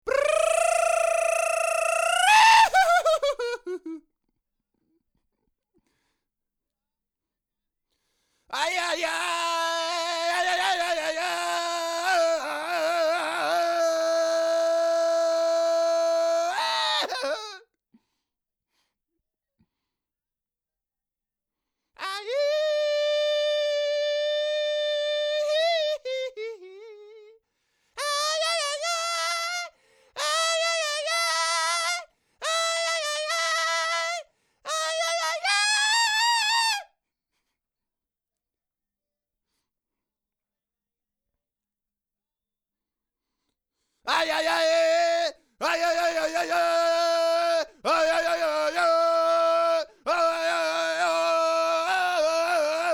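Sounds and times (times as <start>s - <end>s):
vocals: 0.0s - 4.0s, 8.5s - 17.7s, 22.0s - 27.4s, 28.0s - 36.8s, 44.0s - 52.9s.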